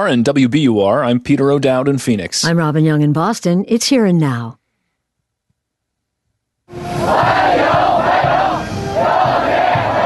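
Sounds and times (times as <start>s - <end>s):
speech: 0.0s - 4.6s
Chinese teenagers chanting welcome in unison: 6.8s - 10.0s.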